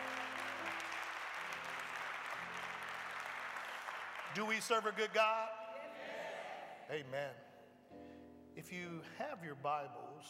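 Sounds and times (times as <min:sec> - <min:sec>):
large audience clapping: 0:00.0 - 0:05.5
speech: 0:04.4 - 0:05.6, 0:06.9 - 0:07.5, 0:08.6 - 0:10.2.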